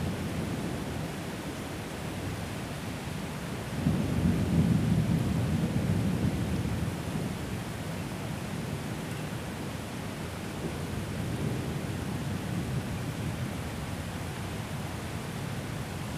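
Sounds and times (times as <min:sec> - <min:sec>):
rain in Genova at night: 0:00.0 - 0:16.1
thunder in Genova at night: 0:03.8 - 0:07.0.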